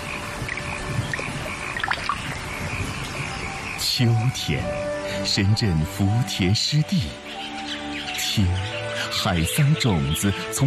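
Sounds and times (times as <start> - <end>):
raindrops splashing in early rice paddy in Zhengguo, Zengcheng: 0.0 - 3.6
speech: 4.0 - 7.5, 8.4 - 10.6.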